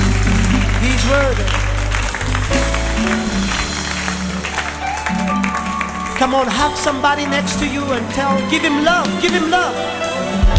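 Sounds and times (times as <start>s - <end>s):
audience applause: 0.0s - 8.0s
speech: 6.2s - 10.4s.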